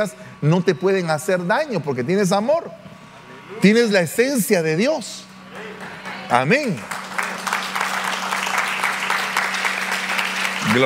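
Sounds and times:
speech: 0.0s - 2.9s, 3.6s - 7.0s
audience applause: 5.5s - 10.8s.

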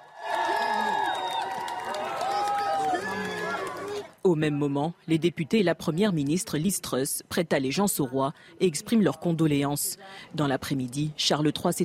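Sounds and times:
large crowd cheering and applauding: 0.0s - 4.1s
speech: 4.2s - 11.8s.

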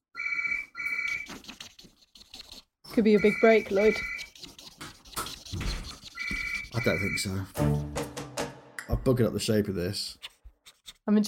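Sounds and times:
telephone ringing: 0.2s - 1.2s, 3.1s - 4.2s
speech: 3.0s - 4.1s, 6.8s - 7.9s, 9.0s - 10.2s, 11.1s - 11.2s.

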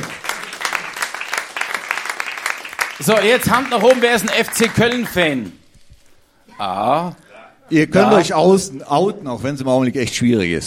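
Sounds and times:
audience applause: 0.0s - 5.6s
speech: 3.0s - 5.6s, 6.6s - 10.6s.

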